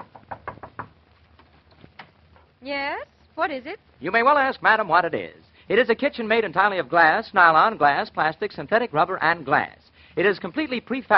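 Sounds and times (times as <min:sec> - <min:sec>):
knocking on an old-fashioned kitchen door: 0:00.0 - 0:01.0
speech: 0:02.6 - 0:11.1.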